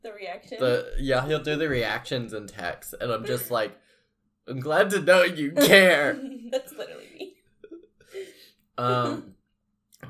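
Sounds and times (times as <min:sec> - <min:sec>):
speech: 0:00.1 - 0:03.8, 0:04.5 - 0:07.1, 0:08.8 - 0:09.4
person clearing throat: 0:05.6 - 0:06.1.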